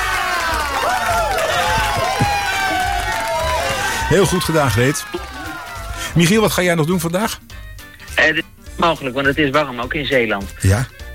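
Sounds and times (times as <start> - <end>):
crowd applauding: 0.0 - 7.0
excited cheering: 0.0 - 7.1
overlapping voices: 0.1 - 6.6
speech: 4.1 - 5.3, 6.1 - 7.5, 8.2 - 11.0.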